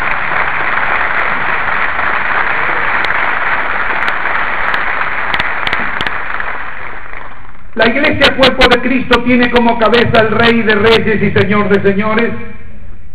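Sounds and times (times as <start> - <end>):
audience applauding: 0.0 - 7.7
speech: 7.9 - 12.6.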